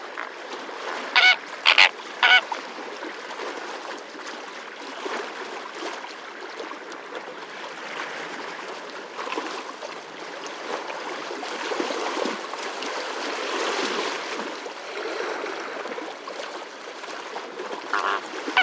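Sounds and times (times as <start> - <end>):
flamingos calling: 0.0 - 0.4, 1.1 - 2.4, 17.9 - 18.6
frogs croaking: 0.0 - 0.5, 1.1 - 2.4, 17.9 - 18.6
great egret calling: 0.0 - 2.5, 17.9 - 18.6
waves lapping at Etang Vaccares: 0.0 - 18.6.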